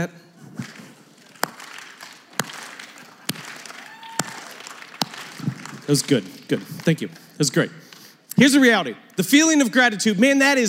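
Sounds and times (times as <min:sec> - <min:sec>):
speech: 0:00.0 - 0:00.2, 0:05.9 - 0:07.8, 0:08.4 - 0:10.6
sarcastic slow clap from audience: 0:00.5 - 0:06.9.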